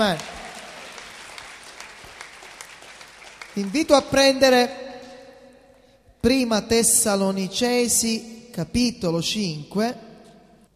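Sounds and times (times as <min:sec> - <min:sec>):
speech: 0:00.0 - 0:00.3, 0:03.6 - 0:04.8, 0:06.2 - 0:10.1
congregation applauding during an Italian church service: 0:00.0 - 0:04.2.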